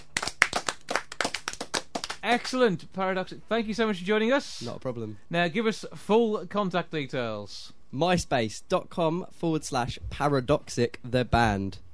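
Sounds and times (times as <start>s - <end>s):
audience applause: 0.0s - 2.2s
speech: 2.2s - 11.8s.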